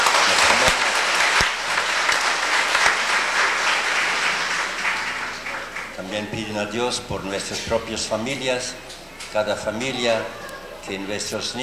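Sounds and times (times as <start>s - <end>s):
crowd applause: 0.0s - 11.6s
laughter: 0.0s - 11.6s
speech: 6.0s - 11.6s.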